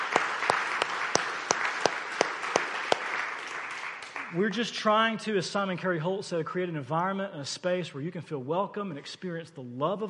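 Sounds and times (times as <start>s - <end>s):
audience applause for a speaker: 0.0s - 4.5s
speech: 4.3s - 10.0s.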